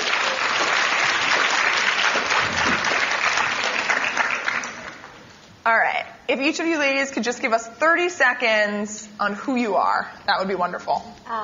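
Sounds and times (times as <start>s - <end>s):
audience applause: 0.0s - 5.2s
speech: 6.3s - 11.4s.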